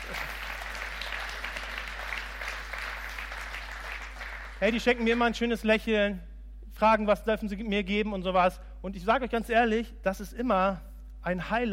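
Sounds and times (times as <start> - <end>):
audience applause: 0.0 - 4.7
speech: 4.6 - 11.7.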